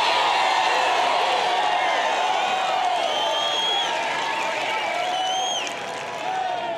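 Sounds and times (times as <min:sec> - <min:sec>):
live studio audience cheering: 0:00.0 - 0:06.7.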